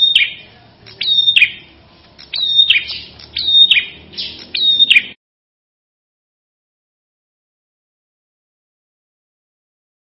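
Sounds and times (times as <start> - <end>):
Ashy tailorbird singing: 0.0 - 5.2.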